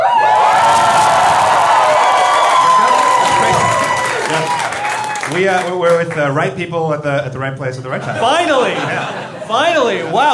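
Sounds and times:
live audience cheering and whooping: 0:00.0 - 0:05.7
speech: 0:05.4 - 0:10.3
laughter: 0:07.9 - 0:10.3.

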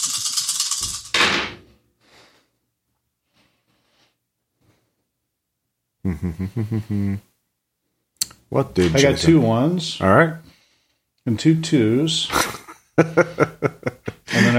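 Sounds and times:
dice rattling: 0:00.0 - 0:01.2
speech: 0:06.0 - 0:07.3, 0:08.5 - 0:10.6, 0:11.2 - 0:13.8
laughter: 0:06.1 - 0:07.2, 0:12.3 - 0:14.5.

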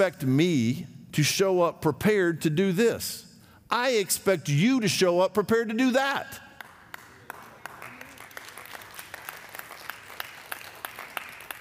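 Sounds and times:
speech: 0:00.0 - 0:06.5
sparse audience clapping: 0:06.6 - 0:11.6.

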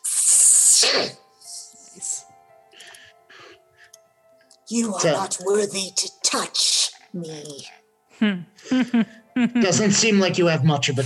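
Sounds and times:
voice imitating an angry hiss: 0:00.0 - 0:02.2
speech: 0:00.8 - 0:01.2, 0:04.7 - 0:11.0.

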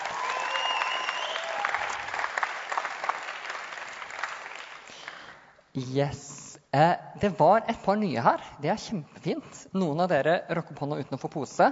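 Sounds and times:
audience applause: 0:00.0 - 0:05.3
speech: 0:05.8 - 0:11.7.

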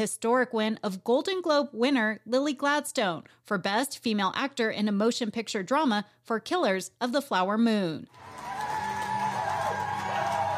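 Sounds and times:
speech: 0:00.0 - 0:08.8
crowd cheering at a watch party: 0:08.1 - 0:10.5.

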